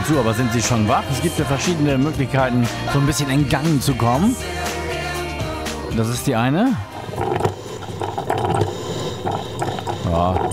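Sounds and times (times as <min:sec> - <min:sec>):
speech: 0:00.1 - 0:04.8, 0:06.0 - 0:07.6, 0:10.1 - 0:10.5
coffee machine brewing: 0:06.8 - 0:10.5.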